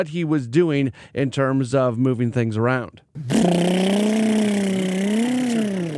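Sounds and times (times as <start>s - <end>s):
speech: 0.0s - 3.8s
vocal imitation of a blender: 3.2s - 5.9s.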